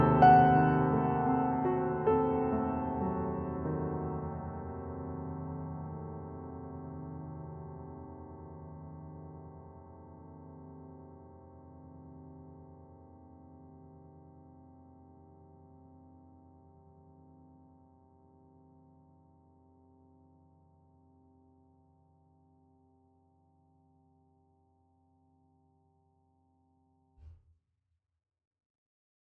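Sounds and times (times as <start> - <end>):
Pianoteq piano notes: 0.0 - 11.1.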